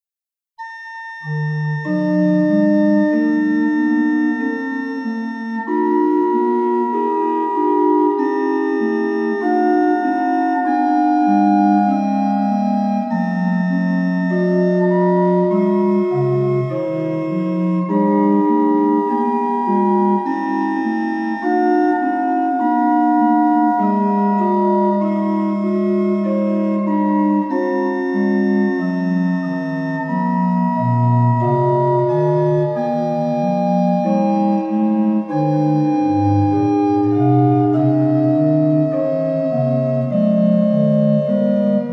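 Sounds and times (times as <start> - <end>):
organ hymn: 0.6 - 41.9.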